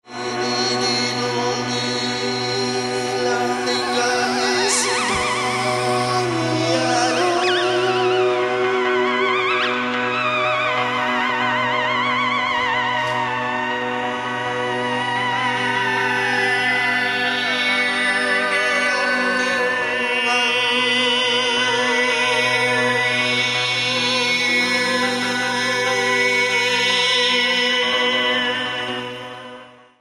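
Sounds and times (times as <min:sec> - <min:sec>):
theremin: 0:00.0 - 0:29.8.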